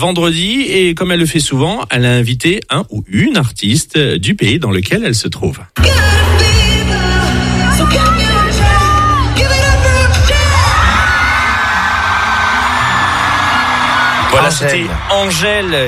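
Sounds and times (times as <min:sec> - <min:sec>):
speech: 0:00.0 - 0:06.1, 0:14.4 - 0:15.8
concert crowd cheering wildly: 0:06.1 - 0:15.8.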